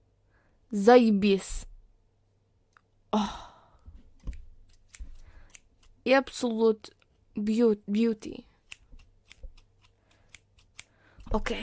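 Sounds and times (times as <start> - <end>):
speech: 0.7 - 1.7, 3.1 - 3.4, 6.0 - 8.5, 11.3 - 11.6
scissors cutting hair: 4.2 - 11.6.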